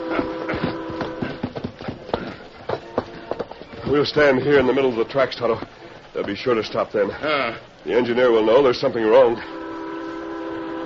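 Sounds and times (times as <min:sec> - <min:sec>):
stallion hooves clip-clopping, being reined in: 0:00.0 - 0:07.2
speech: 0:03.9 - 0:09.6.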